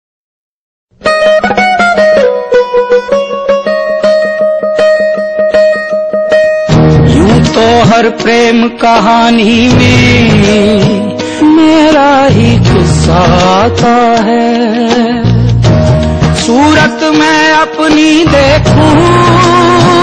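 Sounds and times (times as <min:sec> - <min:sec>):
music: 0:00.9 - 0:20.0.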